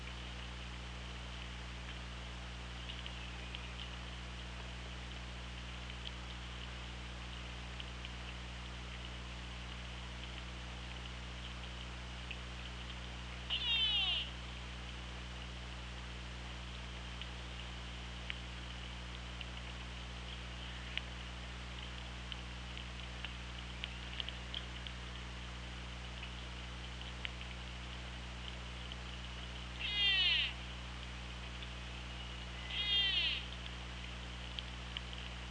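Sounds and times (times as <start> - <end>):
low droning hum: 0.0 - 35.4
orca buzzy pulsed call: 13.5 - 14.3, 29.8 - 30.6, 32.6 - 33.5.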